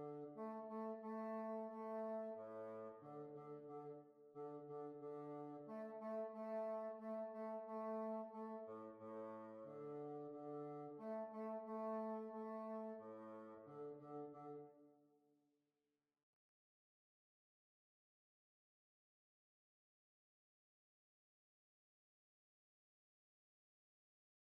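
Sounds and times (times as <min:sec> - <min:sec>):
hornpipe tune: 0:00.0 - 0:14.6.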